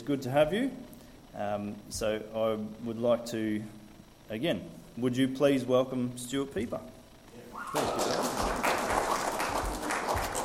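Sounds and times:
speech: 0.0s - 7.0s, 7.6s - 8.3s
audience applause: 7.6s - 10.4s.

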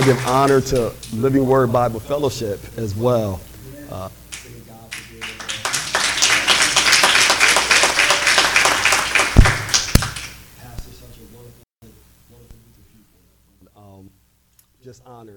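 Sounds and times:
audience clapping: 0.0s - 1.2s, 4.3s - 10.4s
speech: 0.0s - 4.5s, 14.9s - 15.3s.

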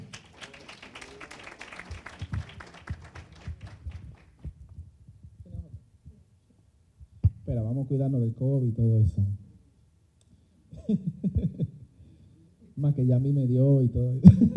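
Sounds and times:
audience applause: 0.0s - 4.4s
speech: 7.5s - 9.4s, 10.9s - 11.8s, 12.8s - 14.5s
laughter: 14.2s - 14.5s.

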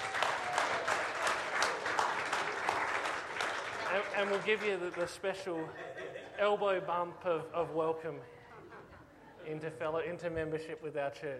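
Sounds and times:
audience applause: 0.0s - 5.4s
speech: 4.1s - 8.4s, 9.4s - 11.3s
laughter: 5.3s - 7.2s, 8.3s - 9.7s.

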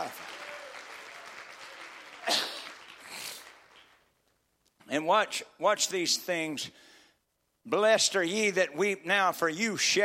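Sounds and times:
audience clapping: 0.0s - 4.4s
speech: 5.0s - 6.9s, 7.6s - 10.0s.

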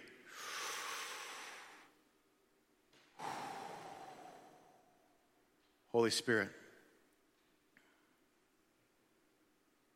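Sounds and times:
group taking a deep breath in: 0.3s - 2.0s, 3.1s - 5.2s
speech: 5.9s - 6.6s.

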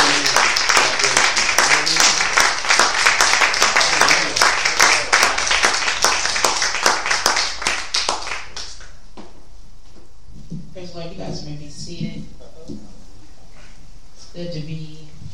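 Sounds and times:
audience applause in church welcoming a speaker: 0.0s - 8.9s.

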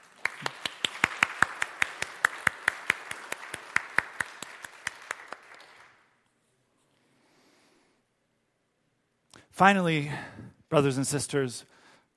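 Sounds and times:
audience applause: 0.0s - 6.0s
speech: 9.6s - 11.7s.

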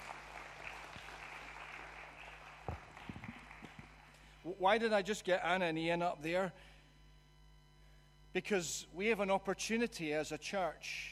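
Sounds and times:
audience applauding: 0.0s - 4.2s
speech: 4.5s - 6.7s, 8.4s - 11.1s.

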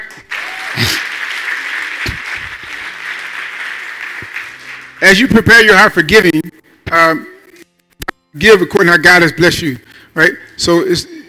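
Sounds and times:
audience clapping hands: 0.0s - 5.4s
speech: 5.1s - 7.3s, 8.4s - 11.2s.

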